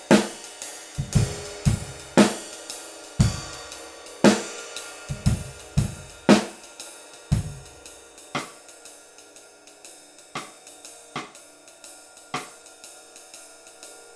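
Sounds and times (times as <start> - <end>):
flat ride cymbal: 0.0 - 14.1.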